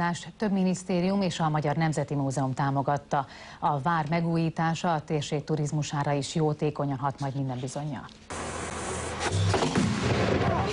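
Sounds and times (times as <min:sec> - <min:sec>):
speech: 0:00.0 - 0:08.4
ceremonial cannon fire at Sárospatak castle opening: 0:09.4 - 0:10.7.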